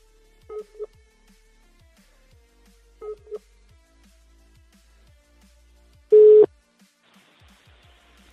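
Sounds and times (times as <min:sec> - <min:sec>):
telephone call signal tones while redialing a number: 0:06.1 - 0:06.5.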